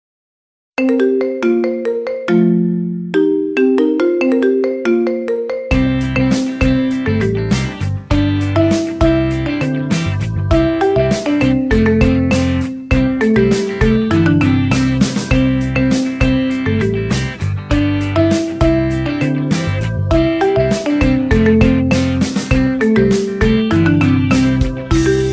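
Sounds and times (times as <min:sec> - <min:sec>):
cute marimba melody: 0:00.8 - 0:25.3.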